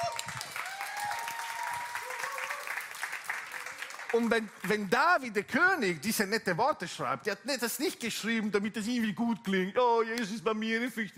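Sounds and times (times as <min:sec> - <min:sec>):
audience applause: 0:00.0 - 0:05.2
speech: 0:04.1 - 0:11.1.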